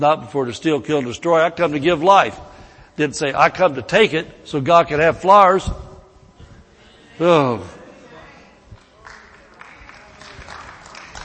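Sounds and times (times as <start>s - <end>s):
speech: 0.0s - 5.9s, 7.2s - 7.8s
audience applauding: 9.0s - 11.2s.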